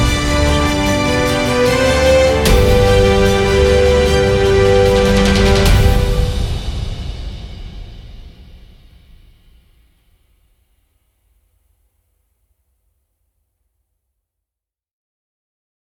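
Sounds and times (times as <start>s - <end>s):
epic orchestral version of a national anthem: 0.0s - 8.8s.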